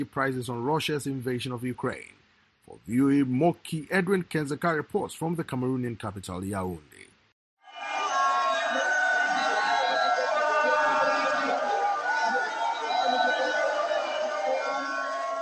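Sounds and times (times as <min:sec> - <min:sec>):
speech: 0:00.0 - 0:07.1
protesting crowd of women shouting on the streets of Yaoundé: 0:07.6 - 0:15.3.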